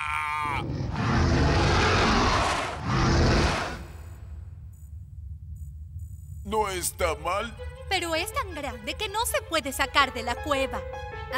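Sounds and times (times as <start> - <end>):
loud roar: 0.1 - 4.0
speech: 6.8 - 11.3.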